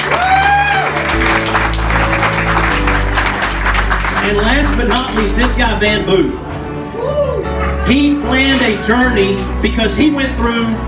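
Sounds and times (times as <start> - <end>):
audience applause: 0.0 - 5.6
speech: 4.3 - 6.5, 7.9 - 10.8.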